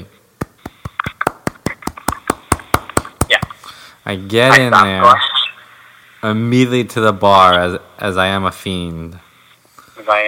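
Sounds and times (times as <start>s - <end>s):
group clapping hands in a steady quick rhythm: 0.4s - 3.5s
speech: 4.0s - 5.3s, 6.2s - 9.2s, 10.1s - 10.2s.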